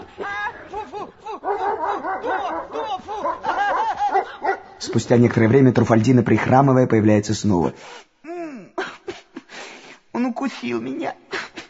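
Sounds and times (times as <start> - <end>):
laughter: 0.0 - 4.8
dog snarling and barking aggressively: 1.4 - 4.7
speech: 4.9 - 8.1, 10.5 - 11.2.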